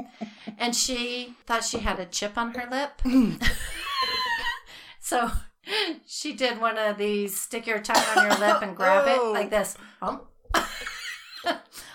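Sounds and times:
speech: 0.1s - 3.9s, 5.1s - 10.3s
gagging cough from wine swallowed wrong: 7.9s - 9.2s.

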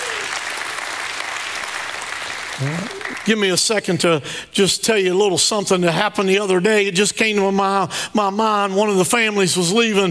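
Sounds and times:
audience applause: 0.0s - 3.3s
voices calling out praise: 2.6s - 3.2s
speech: 2.6s - 10.0s.

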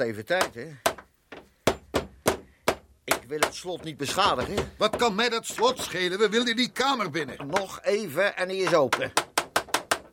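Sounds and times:
speech: 0.0s - 1.0s, 3.3s - 9.2s
hammer knocking pin out of door hinge: 0.4s - 6.1s, 7.2s - 7.8s, 8.5s - 10.1s.

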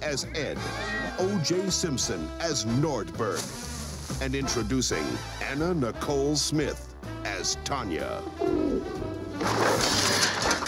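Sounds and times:
speech: 0.1s - 10.2s
rough rustling noise: 3.3s - 4.2s
pigeon cooing: 8.1s - 9.9s.

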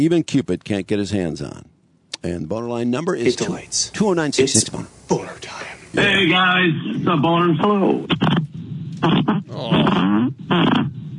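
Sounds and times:
speech: 0.0s - 11.0s
fart: 8.1s - 11.1s.

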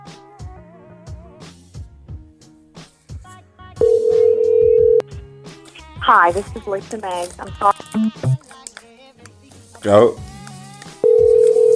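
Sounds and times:
telephone speed-dialing tones: 3.8s - 5.0s, 11.0s - 11.7s
speech: 6.1s - 8.2s, 9.8s - 10.2s
steady high telephone tone: 7.8s - 8.4s.

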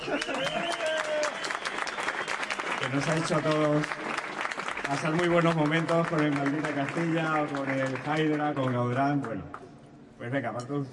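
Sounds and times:
audience applause: 0.0s - 9.4s
speech: 2.8s - 4.1s, 4.9s - 9.6s, 10.2s - 10.9s.

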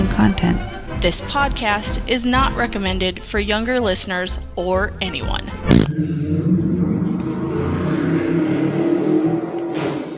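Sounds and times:
speech: 0.1s - 6.5s
cars revving in a drag race: 5.8s - 10.1s.

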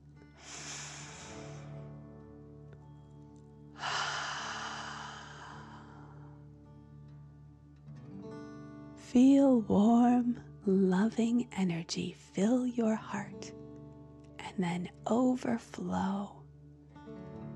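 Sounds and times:
deep slow dragon-breath breathing in a guided meditation: 0.4s - 1.9s, 3.8s - 6.4s
speech: 9.1s - 13.6s, 14.6s - 16.4s.

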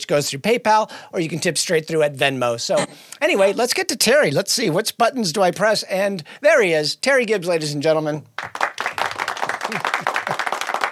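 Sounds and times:
speech: 0.0s - 8.3s
crowd applause: 8.4s - 10.9s.

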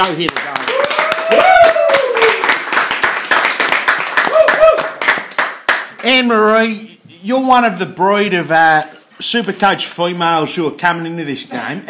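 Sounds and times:
big round of applause: 0.0s - 5.9s
speech: 0.1s - 0.6s, 6.0s - 11.8s.

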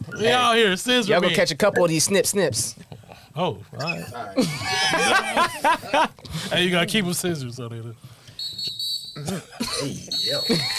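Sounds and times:
speech: 0.2s - 8.1s, 9.2s - 10.7s
laughter: 3.8s - 6.7s, 9.2s - 10.7s
whistle blown: 8.3s - 9.2s, 10.1s - 10.7s.

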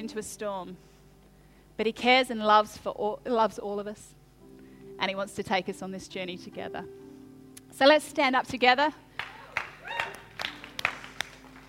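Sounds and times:
speech: 0.0s - 1.0s, 1.8s - 4.2s, 5.0s - 7.0s, 7.7s - 9.0s
person clapping: 9.2s - 11.6s.

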